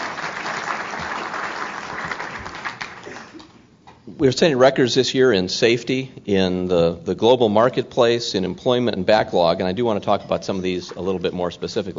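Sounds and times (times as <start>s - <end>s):
crowd applause: 0.0s - 3.5s
speech: 4.2s - 11.9s.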